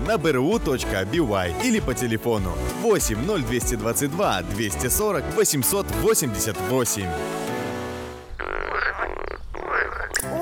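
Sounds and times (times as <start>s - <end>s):
speech: 0.1s - 7.5s
frog croaking: 8.3s - 10.3s.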